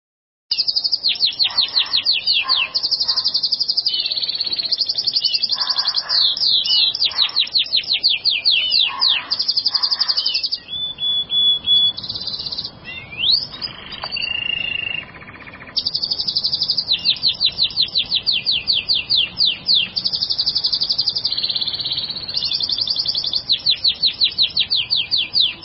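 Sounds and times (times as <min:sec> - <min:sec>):
bird song with clear high whistled notes that rise and drop: 0:00.5 - 0:25.6.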